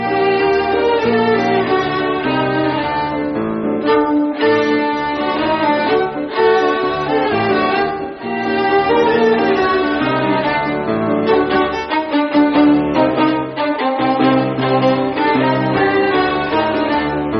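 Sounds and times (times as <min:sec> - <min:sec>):
violin ensemble playing a folk composition: 0:00.0 - 0:17.3.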